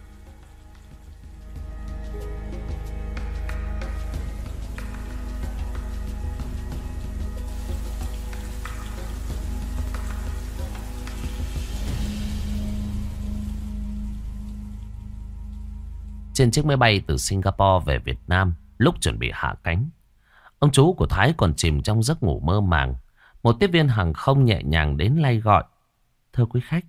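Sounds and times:
rain falling: 3.3 - 16.0
speech: 16.4 - 20.0, 20.6 - 25.7, 26.3 - 26.8.

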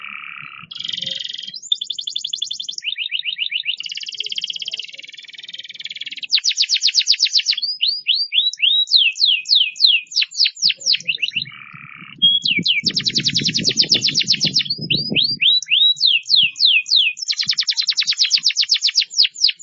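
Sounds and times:
canary buzzy song: 0.0 - 19.6.

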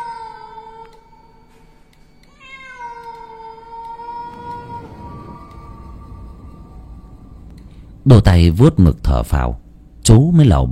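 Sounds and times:
cat yowling eerily: 2.3 - 6.4
speech: 8.0 - 10.7.

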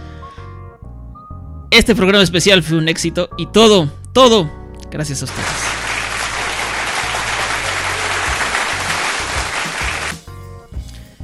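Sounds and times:
quiet music: 0.0 - 11.2
speech: 1.7 - 5.7
applause: 5.3 - 10.2.

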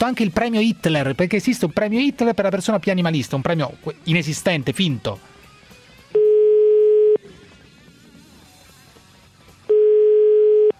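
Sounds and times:
speech: 0.0 - 5.3
telephone line tone while a call is placed: 6.2 - 7.2, 9.7 - 10.7.

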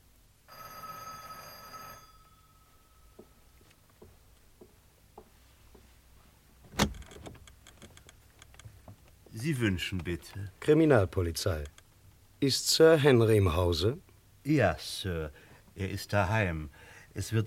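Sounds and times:
doorbell ringing: 0.5 - 3.5
soft taps: 3.2 - 5.9
speech: 9.4 - 11.8, 12.4 - 17.4.

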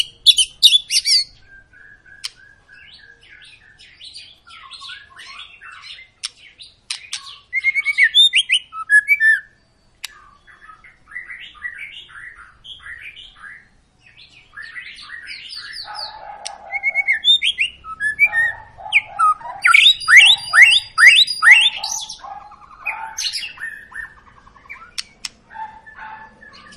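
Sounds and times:
white-rumped shama whistling and twittering: 0.0 - 26.7
white-rumped shama sharp clicks: 6.2 - 7.3, 24.9 - 25.5.

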